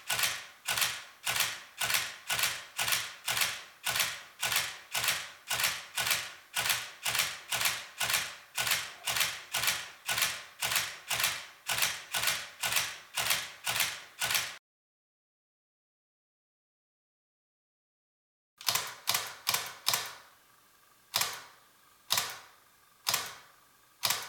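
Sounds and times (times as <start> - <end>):
350D, D70 and 300D camera shutter release: 0.1 - 14.6, 18.6 - 20.2, 21.1 - 24.2.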